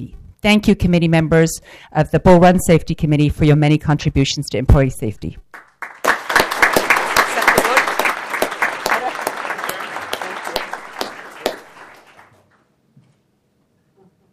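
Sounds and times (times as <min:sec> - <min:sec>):
speech: 0:00.0 - 0:05.4
audience applauding: 0:05.5 - 0:12.4.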